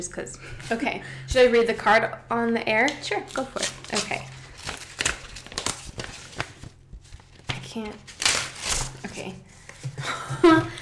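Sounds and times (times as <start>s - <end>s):
speech: 0.0s - 4.4s, 7.8s - 8.1s, 9.2s - 10.8s
gift wrapping paper crinkling and rustling: 3.1s - 9.3s.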